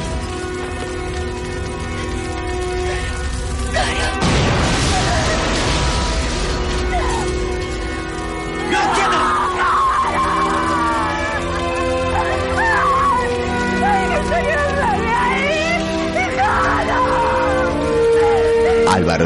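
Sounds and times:
fire rumbling: 0.0s - 19.2s
car parked under a porch exploding as flames reach it: 3.0s - 8.2s.

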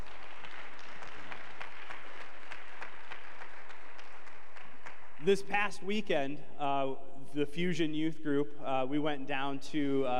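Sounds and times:
audience applause for veterans: 0.0s - 5.2s
speech: 5.2s - 10.1s.

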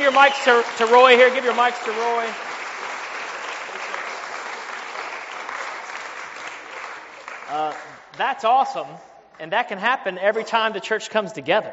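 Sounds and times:
audience applause: 0.0s - 8.0s
speech: 0.1s - 2.5s, 7.5s - 11.7s.

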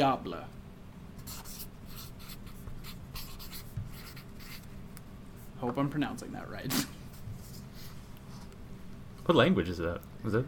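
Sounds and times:
speech: 0.0s - 0.6s, 5.6s - 7.0s, 9.3s - 10.4s
pen or pencil writing quiz answers on paper: 1.2s - 4.7s.

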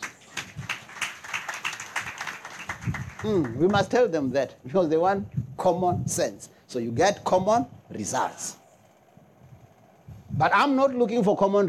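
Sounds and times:
audience clapping hands: 0.0s - 3.9s
speech: 3.2s - 8.6s, 10.4s - 11.6s.

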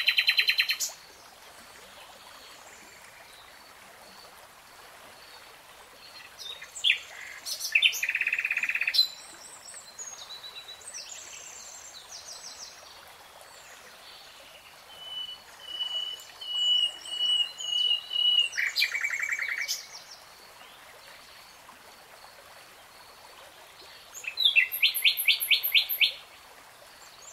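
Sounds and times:
hiss: 0.0s - 27.3s
nightingale singing: 14.9s - 19.9s, 24.2s - 26.2s.

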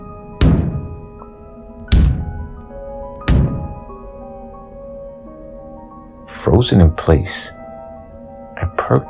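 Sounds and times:
heavy knocks in a house: 0.4s - 1.1s, 1.8s - 2.6s, 3.2s - 4.0s
speech: 6.5s - 7.6s, 8.9s - 9.0s.

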